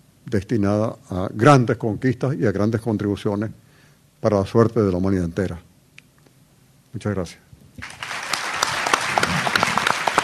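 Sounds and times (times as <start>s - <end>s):
speech: 0.3s - 3.6s, 4.2s - 5.7s, 6.9s - 8.0s
audience clapping after a speech at a book presentation: 7.8s - 10.2s.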